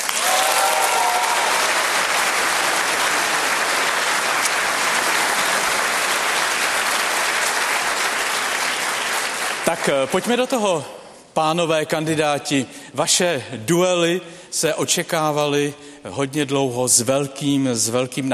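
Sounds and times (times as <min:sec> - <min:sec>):
enthusiastic audience applause: 0:00.0 - 0:10.4
speech: 0:09.7 - 0:18.3.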